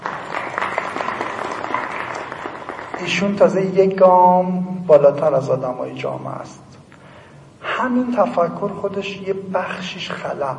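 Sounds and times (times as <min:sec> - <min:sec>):
group of people applauding: 0:00.0 - 0:03.8
speech: 0:03.0 - 0:06.7, 0:07.8 - 0:10.5.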